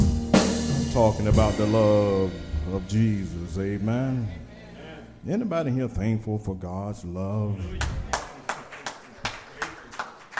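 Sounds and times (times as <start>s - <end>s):
speech: 1.0s - 4.4s, 5.2s - 8.1s
crowd clapping in time: 7.8s - 10.3s.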